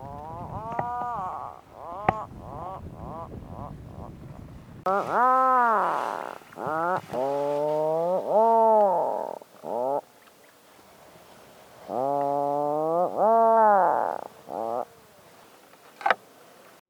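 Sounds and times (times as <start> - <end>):
Atlantic puffin calling: 0.0 - 4.1, 4.9 - 10.3, 11.8 - 15.2.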